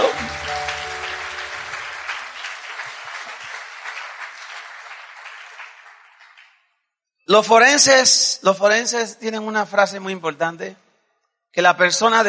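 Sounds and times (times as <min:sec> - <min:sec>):
audience applause: 0:00.0 - 0:06.6
speech: 0:07.3 - 0:10.8, 0:11.5 - 0:12.2.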